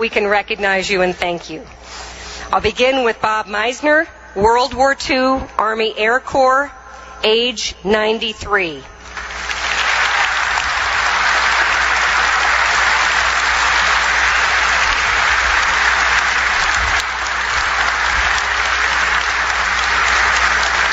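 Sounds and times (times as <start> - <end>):
speech: 0.0 - 8.9
crowd clapping: 9.2 - 20.9.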